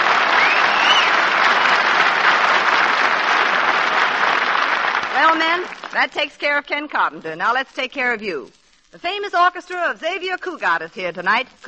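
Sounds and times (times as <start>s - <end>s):
burst of audience applause: 0.0s - 6.0s
speech: 5.3s - 11.6s.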